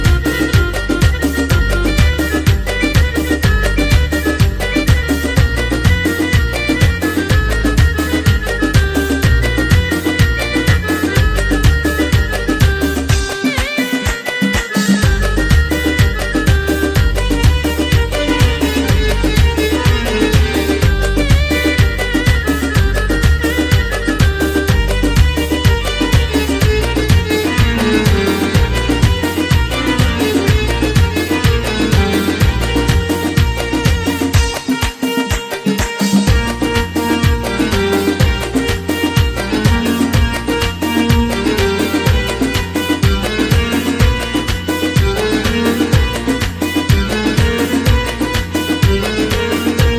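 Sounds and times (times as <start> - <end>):
keyboard: 0.0 - 49.9.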